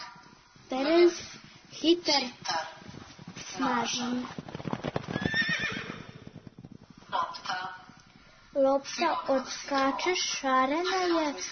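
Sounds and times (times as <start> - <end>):
speech: 0.7 - 2.8, 3.6 - 4.4, 8.6 - 11.5
horse hoof clatter: 0.8 - 8.2
white strong horse neighing: 4.8 - 6.6.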